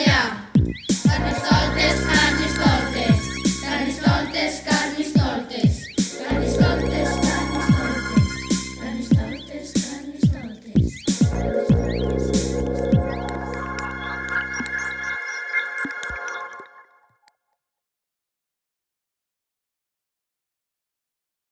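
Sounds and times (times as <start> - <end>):
carnival rap music: 0.0 - 16.4.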